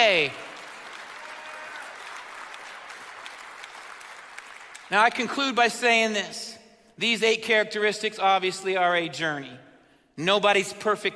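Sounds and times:
speech: 0.0s - 0.4s, 4.9s - 9.6s, 10.2s - 11.1s
audience clapping hands: 0.0s - 5.4s.

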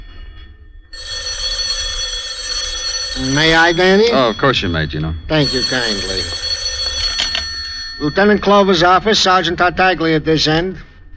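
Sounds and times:
telephone bell ringing: 0.9s - 9.5s
speech: 3.2s - 6.5s, 8.0s - 10.9s.

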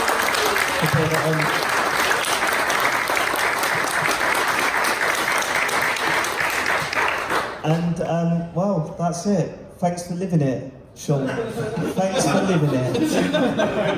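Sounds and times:
laughter: 0.0s - 2.0s, 11.1s - 13.9s
live audience applause: 0.0s - 7.6s
speech: 0.9s - 1.7s, 7.7s - 13.9s.

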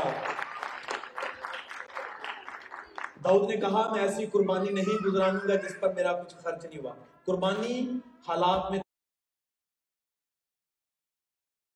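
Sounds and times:
loud audience applause: 0.0s - 3.2s
speech: 3.2s - 8.8s.

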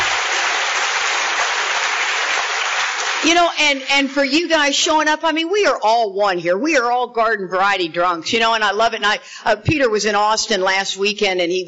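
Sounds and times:
audience round of applause: 0.0s - 4.3s
speech: 3.2s - 11.6s.

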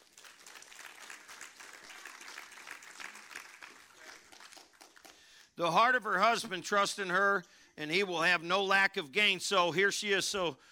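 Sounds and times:
audience applause: 0.0s - 5.3s
speech: 5.6s - 10.7s.

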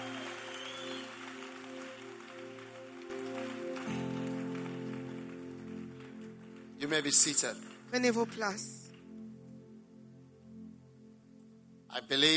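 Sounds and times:
church congregation clapping in praise at a conference: 0.0s - 9.2s
speech: 6.8s - 8.8s, 12.1s - 12.3s.

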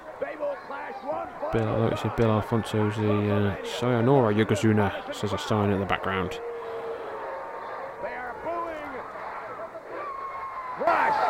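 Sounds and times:
wrestling arena crowd booing: 0.0s - 11.2s
speech: 0.8s - 6.5s.

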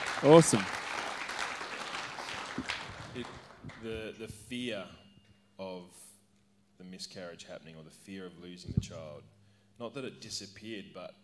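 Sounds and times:
audience clapping: 0.0s - 4.3s
speech: 0.2s - 0.8s, 3.2s - 5.0s, 5.6s - 6.1s, 6.8s - 11.2s.

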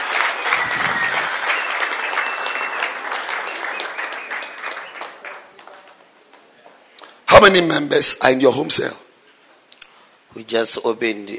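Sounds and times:
church congregation clapping hands: 0.0s - 6.2s
speech: 7.4s - 9.0s, 10.5s - 11.3s.

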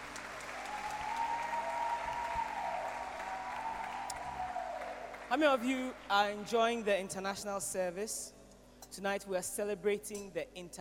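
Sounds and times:
audience hand clapping: 0.0s - 6.5s
speech: 5.3s - 10.7s.

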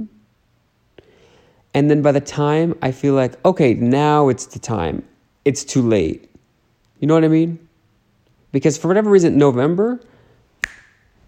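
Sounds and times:
speech: 1.7s - 6.3s, 7.0s - 7.6s, 8.5s - 10.1s
finger snap: 10.6s - 11.2s.

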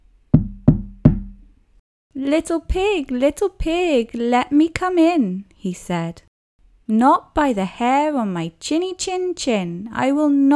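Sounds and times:
knocking on a door: 0.3s - 1.5s
speech: 2.2s - 6.3s, 6.9s - 10.5s.

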